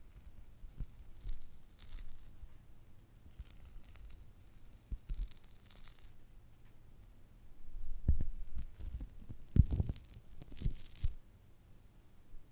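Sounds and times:
giant gummy bear squishing: 0.2 - 2.3, 3.1 - 6.2, 8.6 - 11.2.

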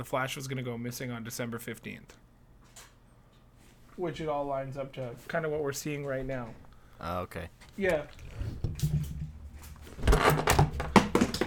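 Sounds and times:
speech: 0.0 - 2.2, 4.0 - 8.6
microphone toppled by a cat, thuds, scrapes and clattering knocks: 8.2 - 11.4.

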